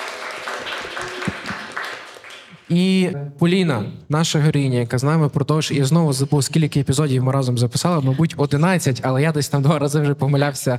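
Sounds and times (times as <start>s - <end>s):
audience clapping: 0.0s - 2.8s
speech: 2.7s - 10.7s.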